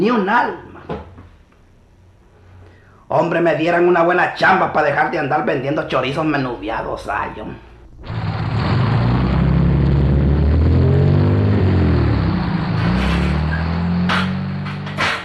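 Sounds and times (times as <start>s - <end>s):
speech: 0.0s - 1.1s, 3.1s - 8.2s
car engine droning as the car approaches in a quiet alley: 5.9s - 15.2s.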